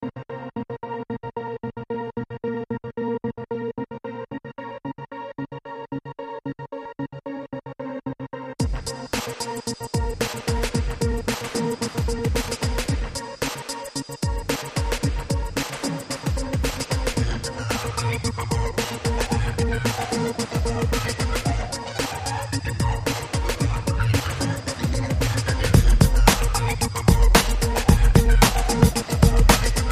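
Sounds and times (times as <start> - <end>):
dark club music: 8.6 - 29.9.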